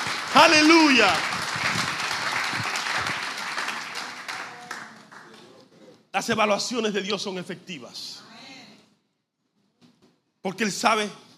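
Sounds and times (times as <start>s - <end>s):
audience applauding: 0.0s - 5.6s
speech: 0.4s - 1.4s, 6.2s - 8.2s, 10.4s - 11.3s.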